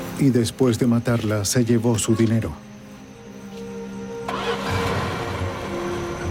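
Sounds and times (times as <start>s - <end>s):
speech: 0.2s - 2.7s
car engine starting: 4.2s - 6.3s.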